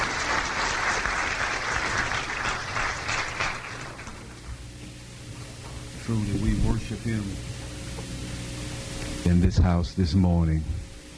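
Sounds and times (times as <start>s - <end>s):
audience hand clapping: 0.0s - 4.6s
speech: 6.1s - 7.6s, 9.3s - 10.8s.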